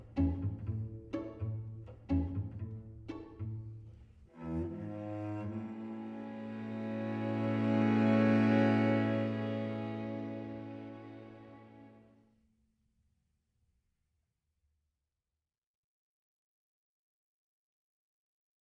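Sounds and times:
string quartet: 0.0s - 12.1s.

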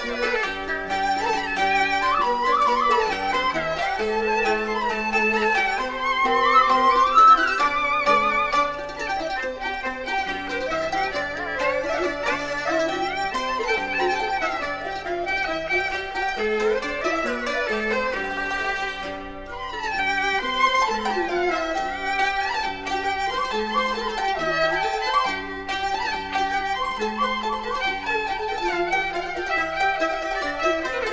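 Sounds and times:
Cantonese music ensemble playing: 0.0s - 31.1s.

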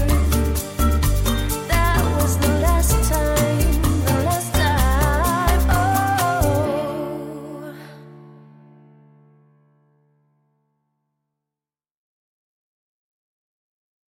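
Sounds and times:
bossa nova music: 0.0s - 8.3s.

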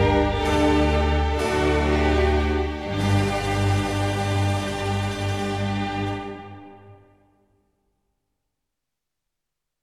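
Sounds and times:
baroque concerto grosso in G: 0.0s - 7.1s.

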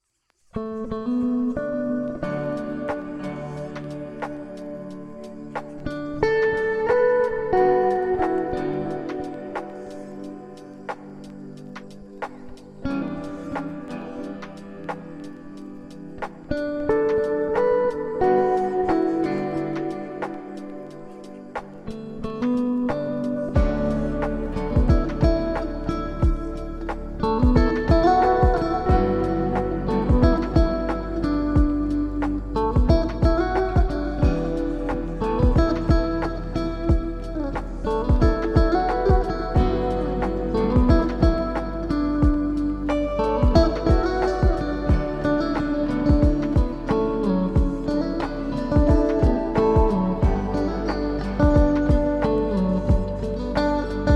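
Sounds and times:
lo-fi instrumental music: 0.5s - 54.1s.

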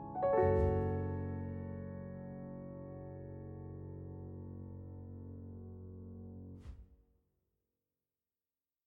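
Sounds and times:
piano music: 0.0s - 6.6s.

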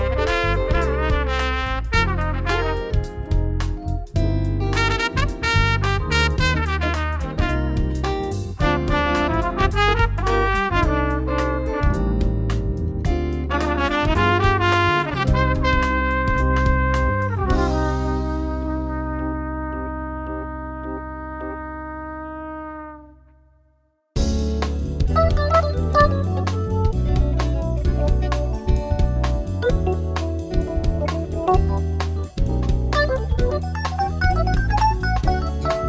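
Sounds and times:
smooth jazz music: 0.0s - 23.4s, 24.2s - 35.8s.

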